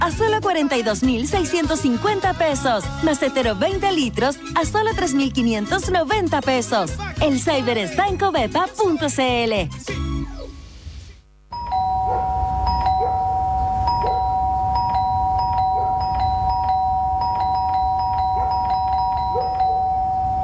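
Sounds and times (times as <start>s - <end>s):
speech: 0.0s - 10.0s
doorbell ringing: 11.5s - 20.4s.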